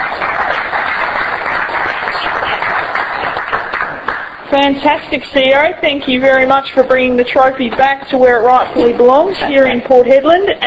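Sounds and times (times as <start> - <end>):
crowd applauding: 0.0 - 4.5
speech: 4.5 - 10.6.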